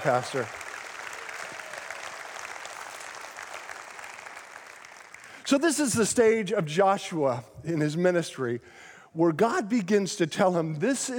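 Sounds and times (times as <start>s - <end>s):
speech: 0.0s - 0.6s, 5.5s - 11.1s
church congregation applauding to welcome a pastor: 0.0s - 5.7s.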